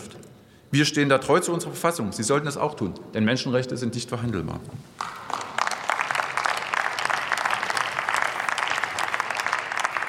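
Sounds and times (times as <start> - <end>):
speech: 0.7 - 5.2
applause in parliament: 5.0 - 10.0.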